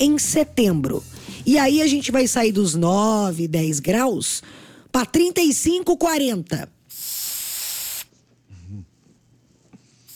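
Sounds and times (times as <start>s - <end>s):
speech: 0.0s - 7.1s
throat spray being sprayed: 6.9s - 8.1s.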